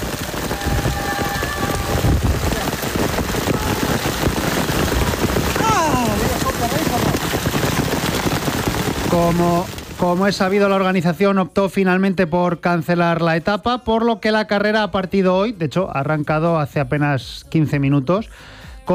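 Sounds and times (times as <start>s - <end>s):
heavy hailstorm: 0.0s - 11.3s
speech: 9.2s - 18.9s.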